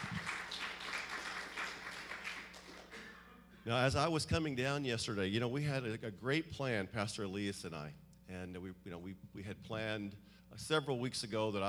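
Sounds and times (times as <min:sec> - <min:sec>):
audience clapping: 0:00.0 - 0:03.2
speech: 0:03.6 - 0:11.6.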